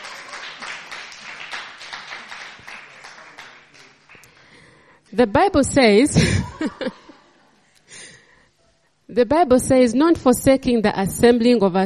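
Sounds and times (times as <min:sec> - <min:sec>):
church congregation clapping together in a steady rhythm: 0:00.0 - 0:04.9
speech: 0:05.1 - 0:07.0, 0:09.2 - 0:11.8
laughter: 0:06.2 - 0:07.7.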